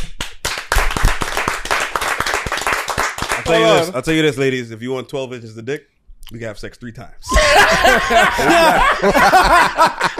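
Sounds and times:
people clapping: 0.0s - 3.9s, 7.7s - 10.1s
speech: 3.5s - 10.1s
laughter: 7.3s - 10.1s.

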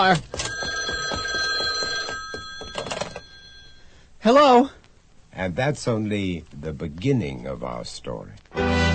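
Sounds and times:
speech: 0.0s - 0.4s, 4.2s - 4.8s, 5.4s - 8.8s
old-fashioned telephone bell ringing: 0.0s - 4.0s.

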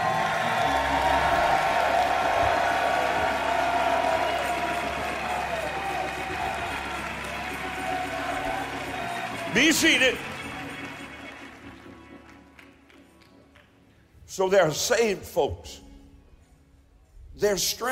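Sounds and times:
audience clapping and shouting: 0.0s - 13.8s
speech: 9.5s - 10.3s, 14.4s - 15.8s, 17.4s - 17.9s.

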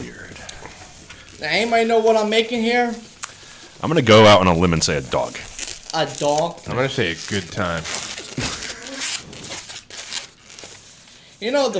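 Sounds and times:
speech: 1.4s - 3.1s, 3.8s - 8.5s, 11.4s - 11.7s
balloon squeaking as it is twisted: 4.6s - 11.0s.

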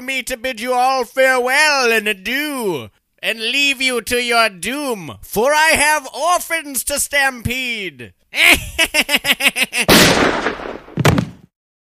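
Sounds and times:
speech: 0.0s - 10.8s
laughter: 8.4s - 9.9s
gunshot from an old revolver: 9.9s - 11.5s.

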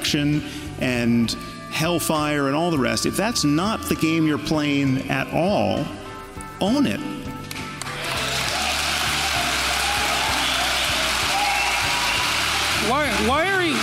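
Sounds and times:
speech: 0.1s - 6.0s, 6.6s - 7.2s
crowd applause: 7.8s - 13.8s.

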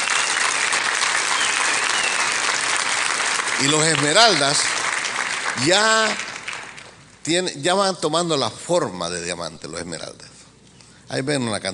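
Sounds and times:
audience applause: 0.0s - 7.0s
speech: 3.6s - 4.8s, 5.6s - 6.2s, 7.2s - 10.3s, 11.1s - 11.7s.

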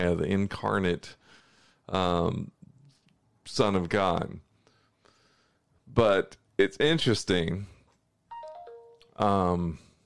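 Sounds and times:
speech: 0.0s - 1.3s, 1.9s - 2.6s, 3.4s - 4.4s, 5.9s - 7.7s, 9.2s - 9.8s
Brave browser notification chime on a phone: 8.3s - 9.2s.

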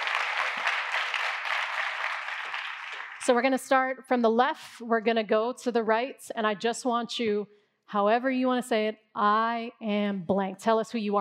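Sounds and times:
audience applause: 0.0s - 3.3s
speech: 3.2s - 11.1s.

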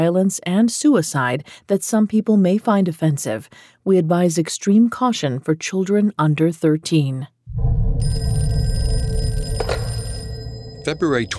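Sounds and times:
speech: 0.0s - 8.4s, 10.8s - 11.3s
low rumbling hum: 7.5s - 9.5s
telephone ringing: 8.0s - 11.3s.

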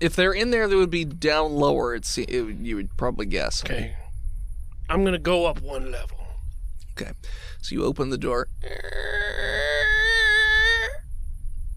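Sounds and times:
speech: 0.0s - 4.0s, 4.9s - 6.2s, 7.0s - 10.0s
cries for help: 8.6s - 11.0s.

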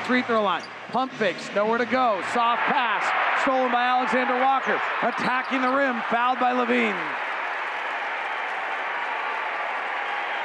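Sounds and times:
speech: 0.1s - 7.2s
arena crowd cheering and applauding: 2.3s - 10.4s.

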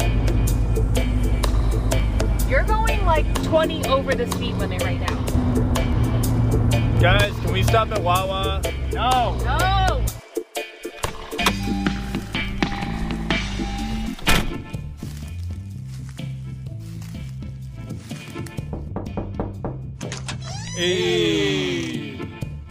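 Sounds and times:
steady low humming musical backing: 0.0s - 10.2s, 11.1s - 19.8s, 20.7s - 22.6s
speech: 3.2s - 5.8s, 7.0s - 9.9s, 20.8s - 21.7s
door knock sound effect: 18.7s - 19.8s.

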